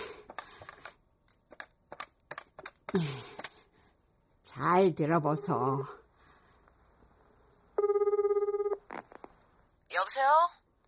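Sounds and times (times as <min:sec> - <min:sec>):
speech: 0:02.9 - 0:03.3, 0:04.6 - 0:06.0, 0:10.0 - 0:10.6
telephone ringing with electronic tone: 0:07.8 - 0:08.9.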